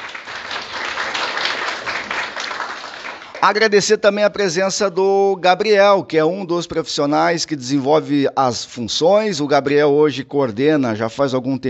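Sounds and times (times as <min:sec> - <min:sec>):
audience applause: 0:00.0 - 0:03.6
speech: 0:03.4 - 0:11.6.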